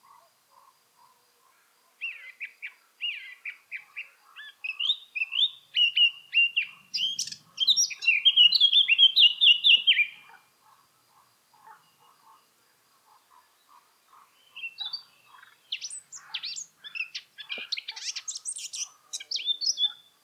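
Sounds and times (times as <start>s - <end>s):
Eurasian blackcap song: 2.0s - 10.3s, 14.4s - 20.2s.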